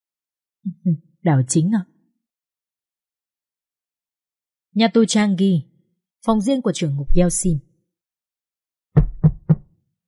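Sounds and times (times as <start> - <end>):
speech: 0.6 - 1.9, 4.8 - 7.7
knocking on the door of the prison warden's private room at Changi Prison: 9.0 - 9.7.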